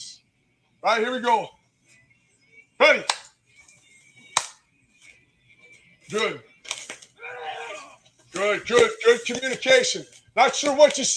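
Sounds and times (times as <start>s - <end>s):
speech: 0.8s - 1.6s, 2.8s - 3.2s, 6.1s - 6.5s, 8.4s - 11.1s
coach's single hand clap: 3.0s - 3.3s, 4.3s - 4.6s.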